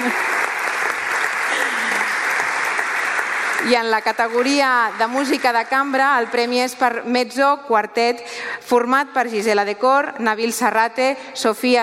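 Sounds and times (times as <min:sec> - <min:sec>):
audience applause: 0:00.0 - 0:06.8
speech: 0:03.6 - 0:11.8.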